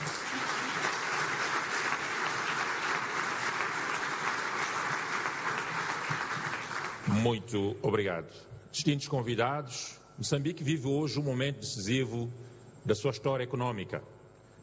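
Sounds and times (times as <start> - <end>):
audience applause: 0.0 - 7.2
speech: 7.2 - 14.2.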